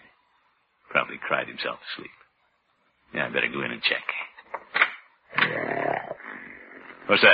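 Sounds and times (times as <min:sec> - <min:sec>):
speech: 0:01.1 - 0:02.2, 0:03.1 - 0:04.2, 0:07.1 - 0:07.3
Great Dane dog snoring loudly: 0:05.5 - 0:07.1.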